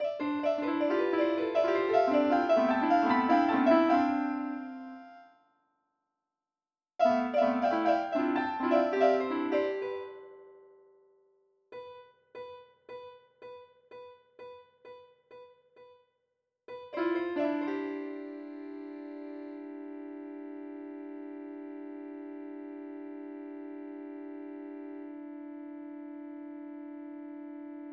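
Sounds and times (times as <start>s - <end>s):
piano: 0.0s - 5.3s, 7.0s - 10.9s, 16.9s - 27.9s.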